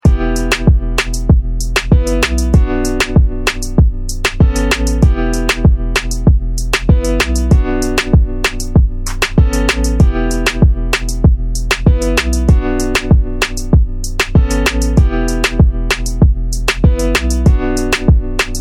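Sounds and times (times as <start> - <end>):
instrumental music: 0.0 - 18.5.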